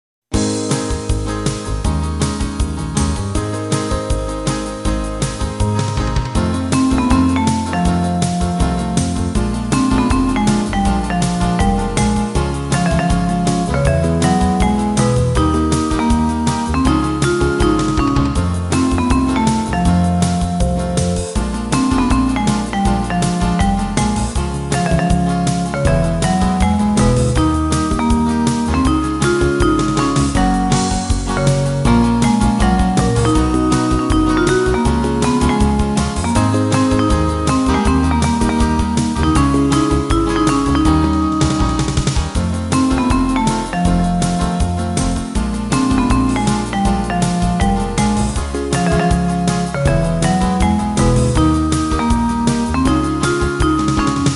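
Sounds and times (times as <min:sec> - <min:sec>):
jazz music: 0:00.4 - 0:54.3.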